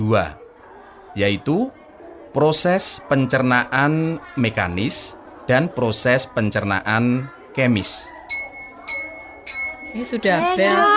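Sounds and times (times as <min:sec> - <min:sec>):
speech: 0:00.0 - 0:00.4, 0:01.2 - 0:08.1, 0:10.0 - 0:10.9
school bell ringing: 0:08.3 - 0:10.9.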